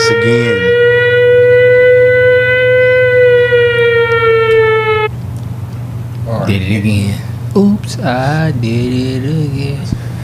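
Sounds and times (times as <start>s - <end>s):
alarm siren sound effect: 0.0s - 5.1s
speech: 0.1s - 0.6s, 6.7s - 10.0s.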